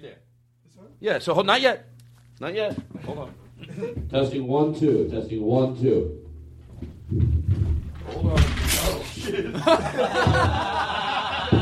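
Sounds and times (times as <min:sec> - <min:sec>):
speech: 0:00.1 - 0:06.2, 0:06.8 - 0:10.9
chair falling over: 0:06.8 - 0:09.2
people chuckling and snickering: 0:09.2 - 0:11.6.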